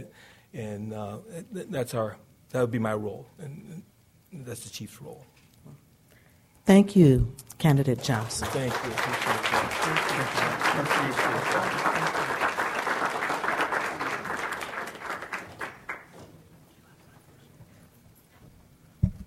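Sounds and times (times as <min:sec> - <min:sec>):
speech: 0:00.5 - 0:05.8, 0:06.7 - 0:12.3
audience applause: 0:08.1 - 0:16.2.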